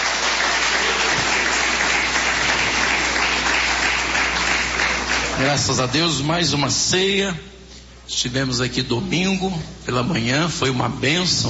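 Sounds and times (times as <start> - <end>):
audience clapping hands: 0.0 - 6.2
speech: 5.4 - 7.5, 8.1 - 11.4.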